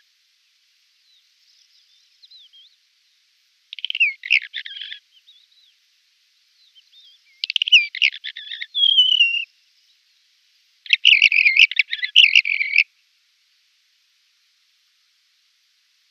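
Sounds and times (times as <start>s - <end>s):
red-rumped wheatear scratchy buzzing song: 3.7s - 5.7s, 6.6s - 9.5s, 10.9s - 12.8s.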